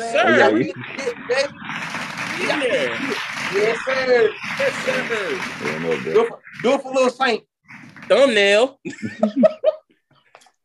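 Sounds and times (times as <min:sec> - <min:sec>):
laughter: 0:00.0 - 0:01.2, 0:02.3 - 0:06.8, 0:08.8 - 0:09.8
speech: 0:00.0 - 0:01.7, 0:02.4 - 0:07.5, 0:08.1 - 0:09.6
clapping: 0:01.8 - 0:06.2.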